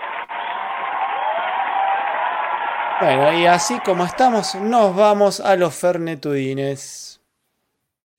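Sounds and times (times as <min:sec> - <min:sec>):
applause sound effect: 0:00.0 - 0:05.6
speech: 0:03.0 - 0:07.2.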